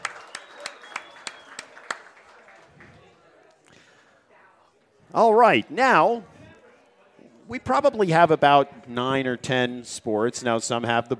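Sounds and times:
hands clapping: 0.0s - 3.1s
speech: 5.1s - 6.3s, 7.5s - 11.1s.

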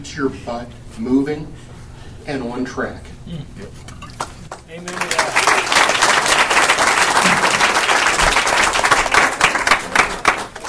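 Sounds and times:
speech: 0.0s - 4.0s, 4.7s - 5.7s
audience applause: 4.8s - 10.6s.

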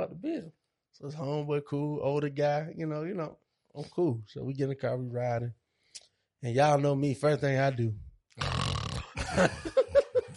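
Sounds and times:
speech: 0.3s - 5.6s, 6.4s - 8.6s, 9.4s - 9.8s
person imitating snoring: 8.4s - 9.2s
laughter: 9.2s - 10.3s.

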